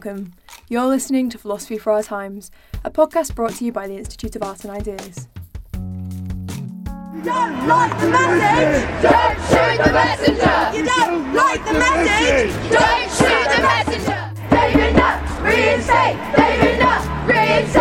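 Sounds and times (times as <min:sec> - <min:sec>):
speech: 0:00.0 - 0:05.3, 0:07.2 - 0:14.2, 0:14.8 - 0:17.7
protest crowd outside Parliament chanting in unison: 0:07.2 - 0:17.7.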